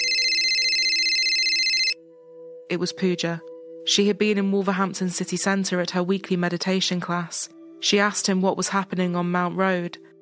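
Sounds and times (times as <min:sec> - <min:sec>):
phone ringing with an electronic trill: 0:00.0 - 0:02.0
speech: 0:02.7 - 0:10.1.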